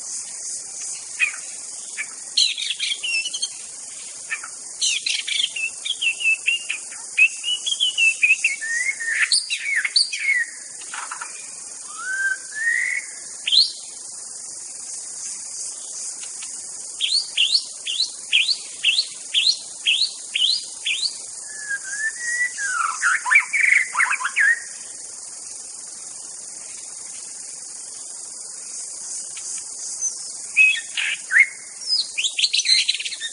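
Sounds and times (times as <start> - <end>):
steady insect hum: 0.0 - 33.3
white-rumped shama song: 2.0 - 3.6, 4.3 - 13.8, 17.0 - 24.8, 30.0 - 33.3.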